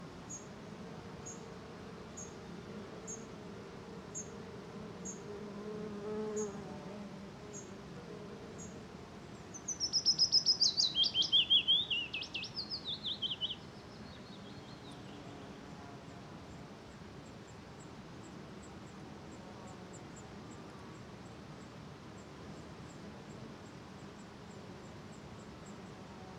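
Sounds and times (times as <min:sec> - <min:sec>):
many insects humming in a forest in Norway: 0:00.0 - 0:26.3
willow warbler singing in a small birch forest in Norway: 0:09.5 - 0:15.2.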